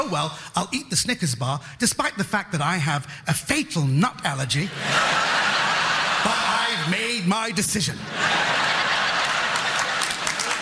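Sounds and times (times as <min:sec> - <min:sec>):
speech: 0:00.0 - 0:08.7
laughter: 0:04.6 - 0:10.6
audience applause: 0:08.2 - 0:10.6.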